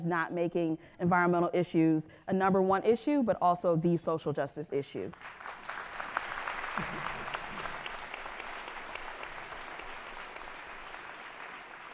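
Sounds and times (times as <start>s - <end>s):
speech: 0.0s - 5.6s, 6.8s - 7.1s
audience applause: 5.2s - 11.9s.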